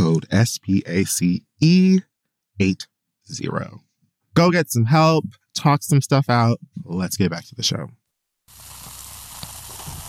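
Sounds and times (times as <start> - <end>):
speech: 0.2 - 8.0
fizzing bubbles of sparkling rosé wine: 8.5 - 10.0.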